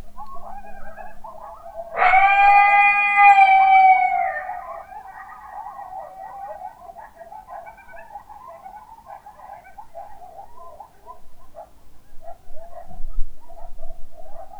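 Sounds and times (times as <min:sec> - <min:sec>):
coyotes howling: 0:01.9 - 0:06.2.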